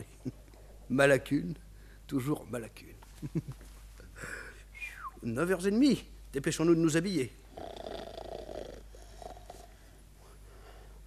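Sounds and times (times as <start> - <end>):
speech: 0.9 - 3.6, 5.2 - 7.4
person snoring in an alcove: 7.5 - 9.7.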